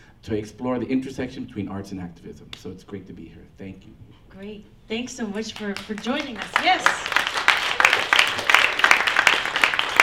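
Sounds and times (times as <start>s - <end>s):
speech: 0.2s - 7.1s
audience applause: 6.0s - 10.0s.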